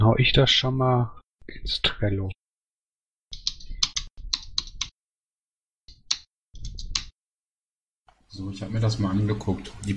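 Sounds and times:
speech: 0.2 - 2.4, 8.4 - 9.9
computer keyboard typing an email during a working-group meeting: 3.3 - 4.9, 5.9 - 7.1.

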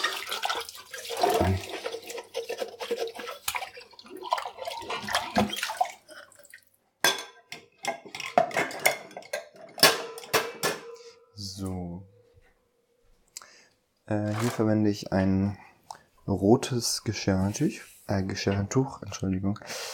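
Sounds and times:
washing dishes in sink water: 0.0 - 10.6, 14.1 - 15.4, 16.8 - 19.4
speech: 1.4 - 1.7, 5.4 - 5.7, 14.1 - 15.6, 16.3 - 19.9.

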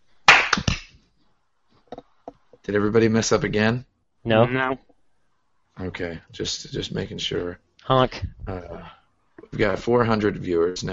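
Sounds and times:
group clapping: 0.3 - 1.0
speech: 2.6 - 4.9, 5.8 - 10.9.

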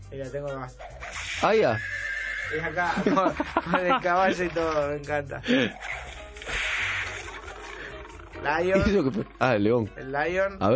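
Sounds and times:
speech: 0.1 - 6.0, 8.4 - 10.7
whip crack from a phone app: 1.0 - 1.4, 6.4 - 7.4
laughter: 2.6 - 6.3, 7.2 - 9.6.

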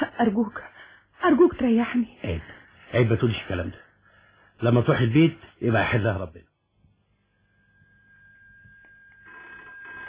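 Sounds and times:
speech: 0.0 - 3.8, 4.6 - 6.5
telephone ringing: 7.6 - 10.0.

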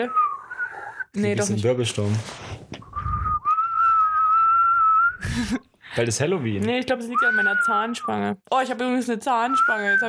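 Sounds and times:
speech: 0.0 - 0.2, 1.1 - 2.7, 5.4 - 10.0
person attempting an inhaled whistle: 0.0 - 1.2, 2.8 - 5.3, 7.2 - 8.2, 9.4 - 10.0.

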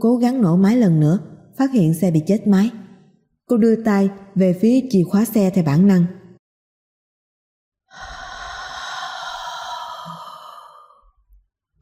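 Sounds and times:
speech: 0.0 - 2.8, 3.5 - 6.2
soft eerie sigh-like breath, horror audiobook sound effect: 7.9 - 11.3.

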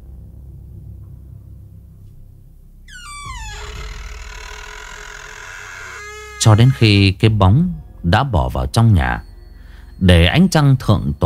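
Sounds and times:
wooden door creaking slowly open: 2.9 - 7.2
speech: 6.4 - 9.3, 10.0 - 11.2.

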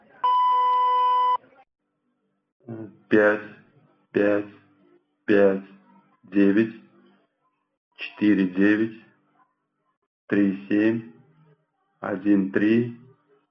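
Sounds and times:
Sberbank robotic card-number entry system beep over the phone: 0.2 - 1.4
person speaking: 2.7 - 3.6, 4.2 - 4.6, 5.3 - 6.8, 8.0 - 9.0, 10.3 - 11.1, 12.0 - 13.0.

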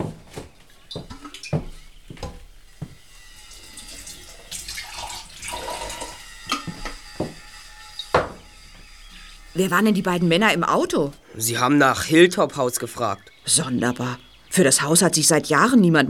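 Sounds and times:
mineral water splashing and trickling into a glass: 3.6 - 6.2
speech: 9.6 - 16.0.

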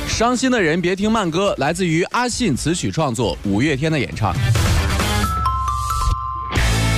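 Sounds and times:
speech: 0.2 - 4.7
ding-dong chime ringtone: 5.2 - 6.8.

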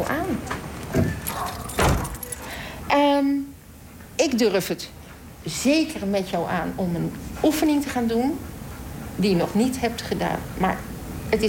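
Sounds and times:
door creaking open: 0.4 - 2.5
keys jingling in a lock: 1.2 - 2.6
speech: 4.2 - 8.5, 9.2 - 11.4.

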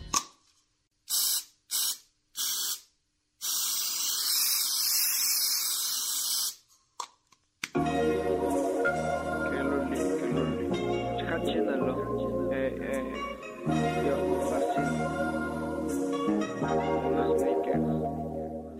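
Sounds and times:
music: 0.0 - 0.2, 7.8 - 18.7
aerosol spray paint can spraying: 1.0 - 6.7.

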